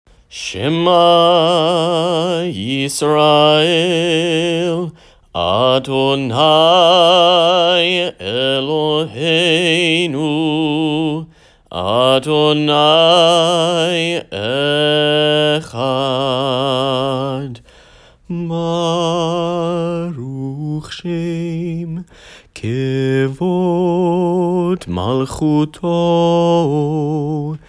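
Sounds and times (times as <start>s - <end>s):
person singing: 0.1s - 27.6s.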